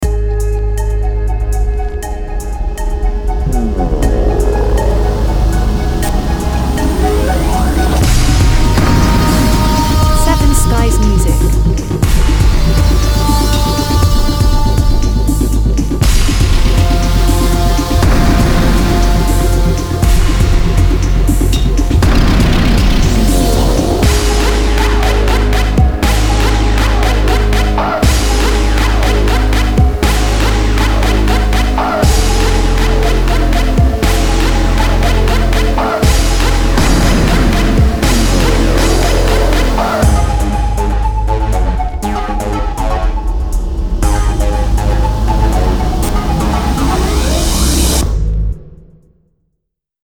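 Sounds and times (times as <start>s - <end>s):
horror trap trailer music: 0.0s - 49.0s.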